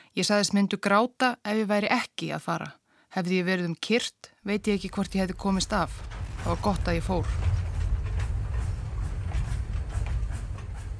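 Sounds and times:
speech: 0:00.2 - 0:07.6
train running along the rails: 0:04.5 - 0:10.9
wheels clattering over the track: 0:04.5 - 0:10.9.

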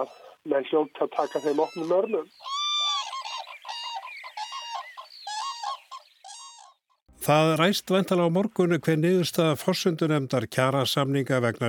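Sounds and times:
speech: 0:00.0 - 0:02.5, 0:07.2 - 0:11.6
large birds calling in hoarse trumpet-like honks: 0:00.0 - 0:06.7.

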